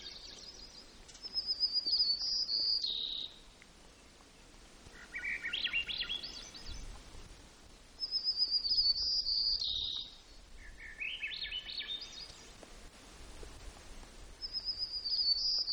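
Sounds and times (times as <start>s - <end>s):
white-crowned sparrow song: 0.0s - 3.5s, 4.9s - 7.0s, 8.0s - 12.6s, 14.4s - 15.7s.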